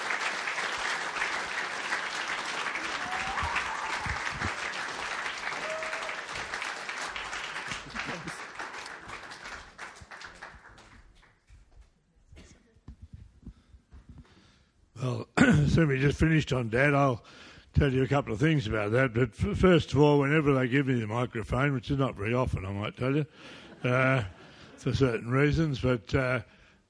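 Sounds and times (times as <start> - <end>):
audience applause welcoming two guests at a building ceremony: 0.0 - 11.4
speech: 15.1 - 26.8.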